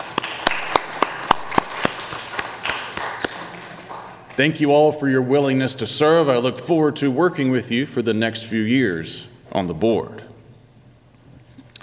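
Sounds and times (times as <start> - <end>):
round of applause: 0.0 - 4.4
speech: 4.4 - 10.2.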